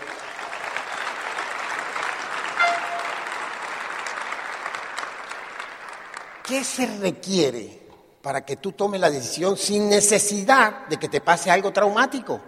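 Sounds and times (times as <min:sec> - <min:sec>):
audience applause: 0:00.0 - 0:06.9
speech: 0:06.5 - 0:12.4.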